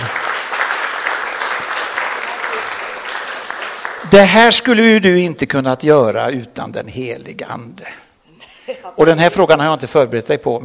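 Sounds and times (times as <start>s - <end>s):
audience applause: 0.0s - 4.6s
speech: 4.1s - 8.0s, 8.7s - 10.6s.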